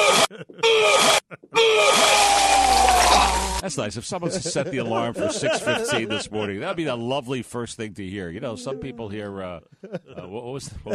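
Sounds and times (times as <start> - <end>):
laughter: 0.0 - 7.0, 8.4 - 10.9
retching sound effect: 1.8 - 3.6
speech: 3.7 - 10.9.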